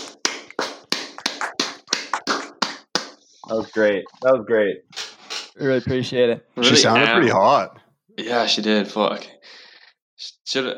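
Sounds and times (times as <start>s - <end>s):
applause: 0.1s - 3.1s
speech: 3.5s - 5.0s, 5.6s - 9.4s, 10.5s - 10.7s.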